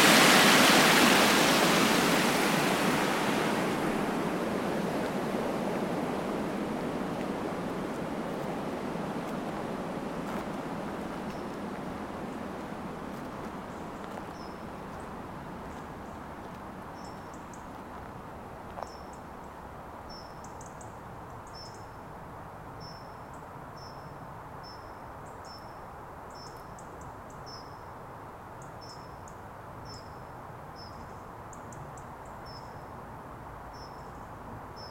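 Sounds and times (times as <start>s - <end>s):
canal soundscape: 0.0s - 17.0s.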